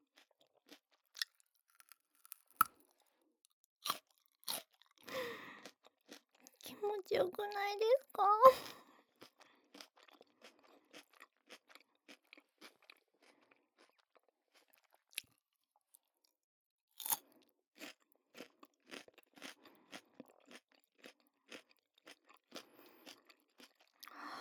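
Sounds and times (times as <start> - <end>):
crunchy chewing of crisp food: 0.1 - 2.8, 3.8 - 6.8, 8.6 - 15.4, 17.0 - 17.2, 17.8 - 24.1
speech: 6.8 - 8.8.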